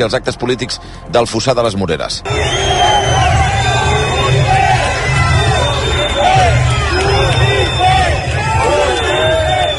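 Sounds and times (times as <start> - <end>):
speech: 0.0 - 3.2
crowd shouting insults: 2.3 - 9.7.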